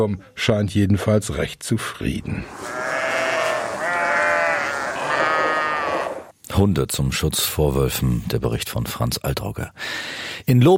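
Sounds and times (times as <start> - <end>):
speech: 0.0 - 2.8, 6.6 - 10.7
herd of sheep bleating: 2.3 - 6.3.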